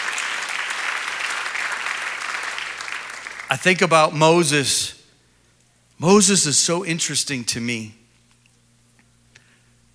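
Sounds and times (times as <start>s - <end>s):
audience clapping: 0.0s - 3.9s
speech: 3.5s - 5.0s, 6.0s - 8.0s.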